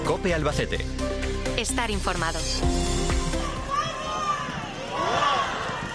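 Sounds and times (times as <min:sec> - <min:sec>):
speech: 0:00.2 - 0:02.8
crowd cheering and shouting: 0:03.0 - 0:05.9.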